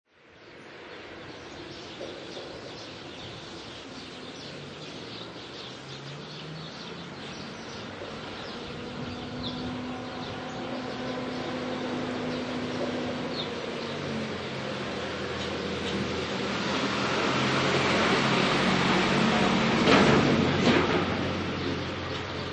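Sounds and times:
general countryside ambience: 0.1 - 22.5
truck driving by on a country road: 5.3 - 22.5.

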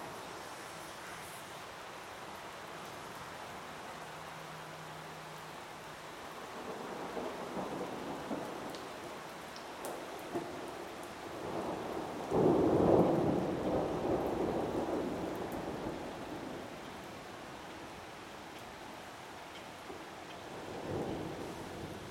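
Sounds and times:
distant thunderstorm in a forest: 6.5 - 18.0, 20.0 - 22.0.

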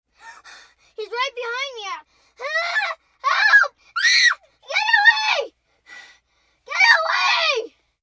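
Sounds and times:
7-year-old child screaming and yelling while being chased: 2.4 - 5.6, 6.7 - 7.8.

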